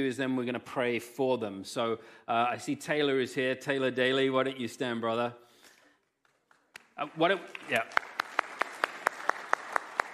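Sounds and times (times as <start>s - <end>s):
speech: 0.0s - 5.5s, 7.0s - 8.1s
audience clapping: 6.2s - 10.1s.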